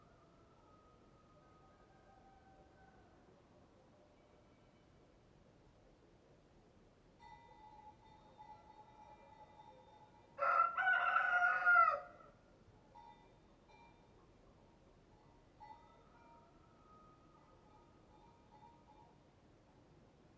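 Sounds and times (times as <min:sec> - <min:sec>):
rooster crowing cock-a-doodle-doo: 0:01.4 - 0:03.2, 0:10.4 - 0:12.3.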